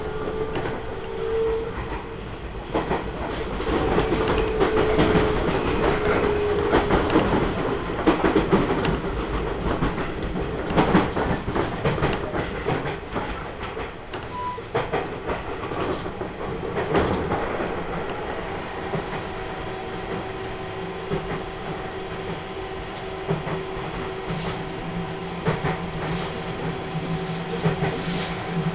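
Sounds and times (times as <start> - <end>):
Seibu Railway train rumbling with rattling wheels: 0.0 - 28.7.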